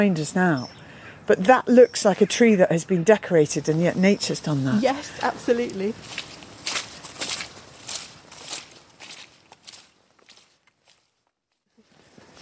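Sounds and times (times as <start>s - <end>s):
speech: 0.0s - 6.3s
footsteps walking along a country road at the edge of a farm: 4.6s - 12.4s.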